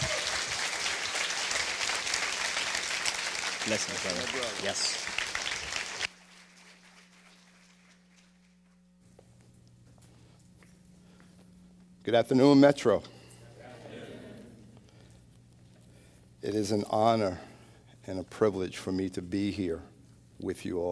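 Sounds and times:
crowd applause: 0:00.0 - 0:08.5
speech: 0:03.7 - 0:05.2, 0:12.1 - 0:13.2, 0:16.5 - 0:17.5, 0:18.1 - 0:20.9.

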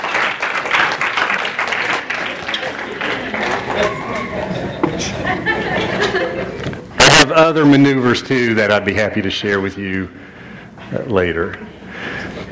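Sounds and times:
round of applause: 0:00.0 - 0:04.4
laughter: 0:02.2 - 0:06.9
speech: 0:07.4 - 0:10.3, 0:10.9 - 0:11.8.

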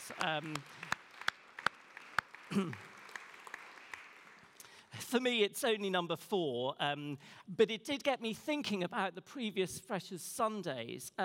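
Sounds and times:
audience applauding: 0:00.0 - 0:04.8
speech: 0:00.1 - 0:00.8, 0:02.5 - 0:02.9, 0:05.0 - 0:11.2.

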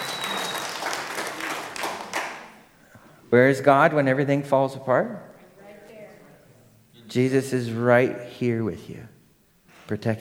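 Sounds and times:
audience clapping: 0:00.0 - 0:02.8
speech: 0:03.3 - 0:05.3, 0:07.1 - 0:09.2, 0:09.9 - 0:10.1.

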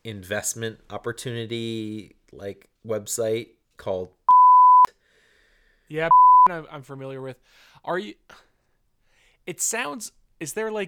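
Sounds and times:
speech: 0:00.0 - 0:04.2, 0:05.9 - 0:08.5, 0:09.5 - 0:10.8
censor bleep over sponsor name: 0:04.3 - 0:04.9, 0:06.1 - 0:06.5.

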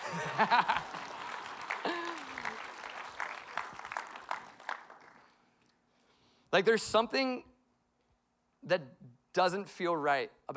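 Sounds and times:
laughter: 0:00.0 - 0:02.8
audience applause: 0:00.0 - 0:05.4
speech: 0:00.1 - 0:00.9, 0:06.5 - 0:07.5, 0:08.6 - 0:10.5.

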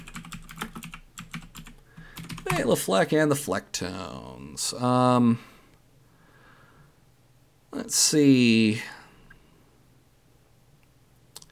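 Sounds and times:
typing on a computer keyboard: 0:00.0 - 0:02.7
speech: 0:02.5 - 0:05.5, 0:07.8 - 0:09.0.

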